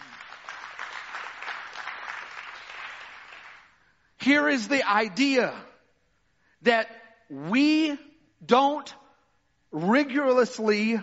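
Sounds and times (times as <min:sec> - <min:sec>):
audience clapping: 0:00.0 - 0:03.9
speech: 0:04.2 - 0:05.7, 0:06.6 - 0:09.0, 0:09.7 - 0:11.0.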